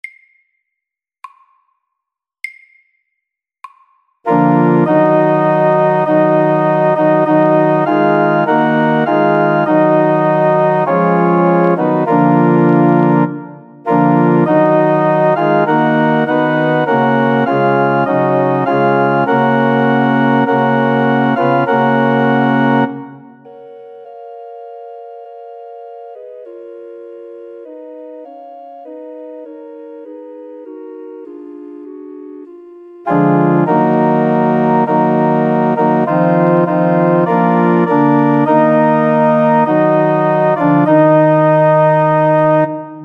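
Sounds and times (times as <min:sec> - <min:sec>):
slow funeral march: 0:04.3 - 0:24.0, 0:30.2 - 0:43.0.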